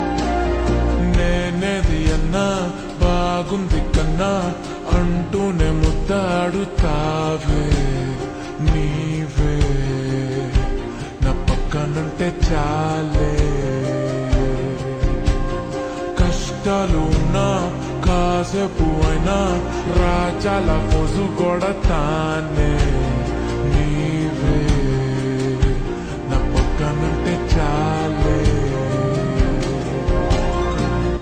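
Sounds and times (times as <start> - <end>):
slowed reverb music: 0.0 - 31.2.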